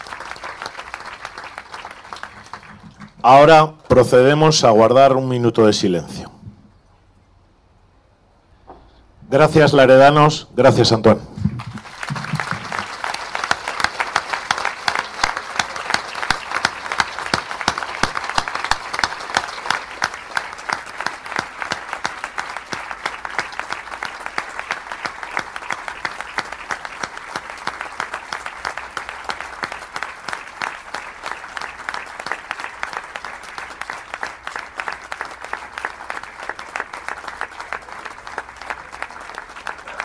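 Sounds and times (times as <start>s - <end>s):
crowd applause in tribute: 0.0s - 3.5s, 11.5s - 40.0s
speech: 3.2s - 6.3s, 9.3s - 11.5s.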